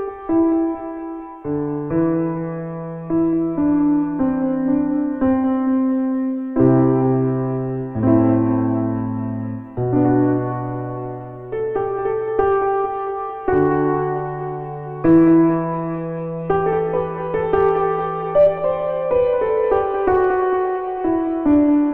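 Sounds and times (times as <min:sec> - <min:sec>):
piano jam in E minor: 0:00.0 - 0:21.9.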